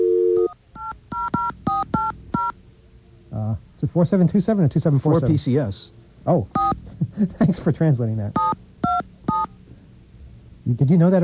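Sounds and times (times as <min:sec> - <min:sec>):
telephone dial tone: 0:00.0 - 0:00.6
telephone number being dialed with touch-tone beeps: 0:00.0 - 0:02.6, 0:06.6 - 0:06.8, 0:08.4 - 0:09.5
speech: 0:03.9 - 0:08.5, 0:10.7 - 0:11.2.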